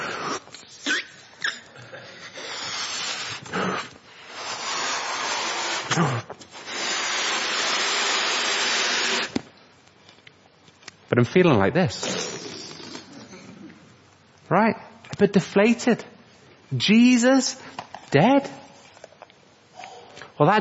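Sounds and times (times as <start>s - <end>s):
balloon being blown up: 2.4s - 9.5s, 12.0s - 13.1s
speech: 6.0s - 6.3s, 11.2s - 12.3s, 14.6s - 16.1s, 16.7s - 18.6s, 20.4s - 20.5s.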